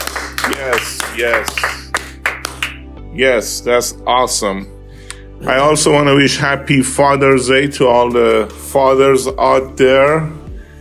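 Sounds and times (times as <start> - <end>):
round of applause: 0.0 - 2.9
speech: 0.6 - 1.8, 3.1 - 4.8, 5.4 - 10.4.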